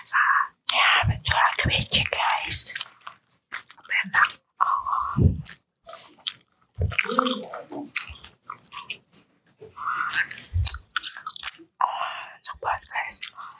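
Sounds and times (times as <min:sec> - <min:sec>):
soft mouth sounds: 0:00.0 - 0:13.5
dry macaroni snacks being bitten and chewed: 0:02.2 - 0:04.4, 0:05.4 - 0:09.2, 0:10.2 - 0:11.6
person murmuring a few short words: 0:05.0 - 0:05.5, 0:06.8 - 0:08.0.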